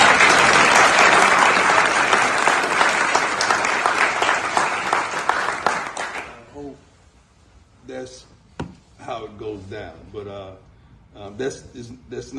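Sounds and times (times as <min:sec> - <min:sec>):
applause and clapping: 0:00.0 - 0:06.5
speech: 0:11.3 - 0:12.3.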